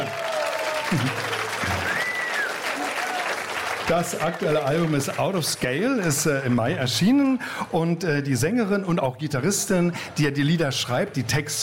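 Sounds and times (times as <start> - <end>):
crowd, audience applause: 0.0 - 7.5
speech: 0.9 - 1.2, 3.9 - 11.6.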